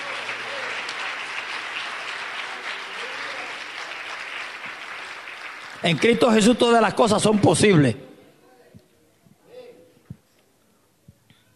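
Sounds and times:
audience applause: 0.0s - 7.9s
speech: 5.8s - 8.1s.

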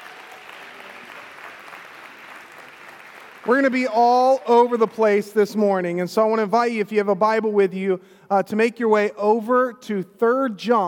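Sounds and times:
church congregation applauding guests at a morning service: 0.0s - 5.5s
speech: 3.4s - 10.8s.

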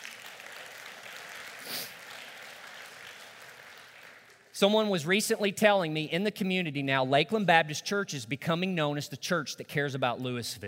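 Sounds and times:
audience applauding: 0.0s - 4.5s
speech: 4.6s - 10.6s.

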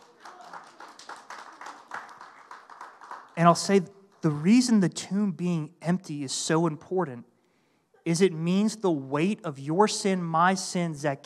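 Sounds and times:
audience clapping: 0.0s - 4.9s
speech: 3.4s - 7.3s, 8.0s - 11.2s.

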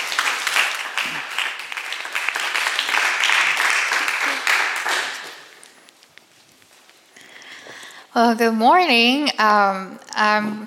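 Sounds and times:
audience applause welcoming a woman speaker at a church morning gathering: 0.0s - 5.6s
speech: 8.2s - 10.6s.

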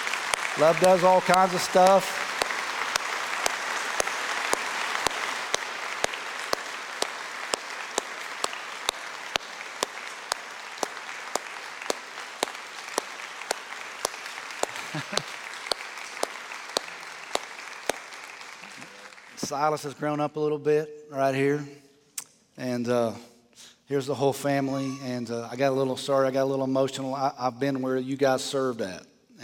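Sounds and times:
sharp evenly spaced rhythmic claps: 0.0s - 19.6s
church congregation giving a standing ovation: 0.0s - 20.0s
speech: 0.6s - 2.2s, 19.5s - 21.8s, 22.6s - 23.3s, 23.9s - 29.4s.

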